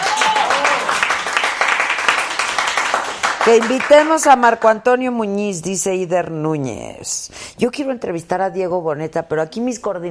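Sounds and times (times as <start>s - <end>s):
applause: 0.0s - 4.3s
speech: 3.4s - 10.0s.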